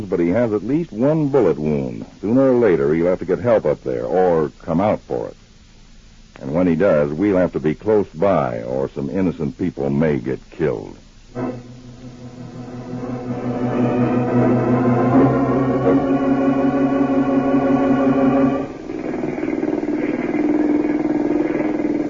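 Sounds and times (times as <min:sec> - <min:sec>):
speech: 0:00.0 - 0:05.4, 0:06.4 - 0:11.7
boat engine droning: 0:11.3 - 0:22.0.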